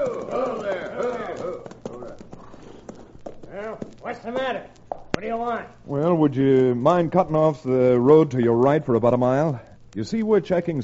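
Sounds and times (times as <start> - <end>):
horse hooves clopping on road: 0.0 - 7.5
voices murmuring: 0.0 - 9.8
speech: 4.2 - 10.8.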